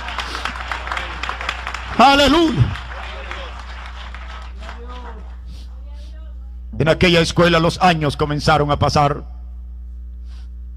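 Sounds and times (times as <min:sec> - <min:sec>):
audience applause: 0:00.0 - 0:05.4
speech: 0:02.0 - 0:02.8, 0:06.9 - 0:09.4.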